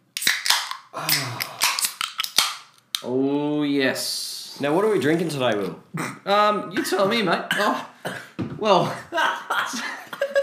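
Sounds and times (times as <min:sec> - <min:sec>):
beer cans being cracked open: 0:00.2 - 0:03.1
speech: 0:01.0 - 0:01.5, 0:03.0 - 0:10.4.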